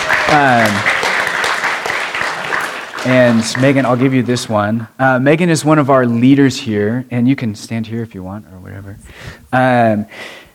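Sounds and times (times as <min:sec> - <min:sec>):
audience clapping: 0:00.0 - 0:04.7
speech: 0:00.3 - 0:00.9, 0:03.0 - 0:10.4.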